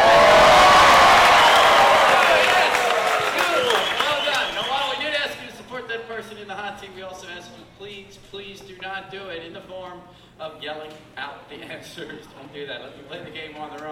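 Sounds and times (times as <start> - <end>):
large studio audience applauding: 0.0 - 5.1
speech: 11.8 - 13.9.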